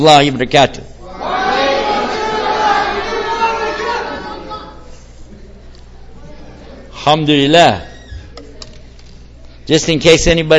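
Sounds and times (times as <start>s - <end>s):
speech: 0.0s - 0.9s, 7.1s - 7.9s, 9.7s - 10.5s
live audience shouting back the salaam greeting in unison: 1.0s - 4.9s.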